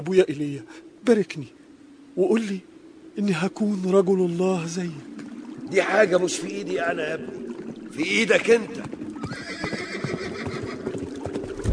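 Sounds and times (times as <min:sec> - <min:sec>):
speech: 0:00.0 - 0:01.6, 0:02.2 - 0:05.1, 0:05.7 - 0:09.4
chariots approaching: 0:00.0 - 0:11.7
horses neighing: 0:07.2 - 0:11.6.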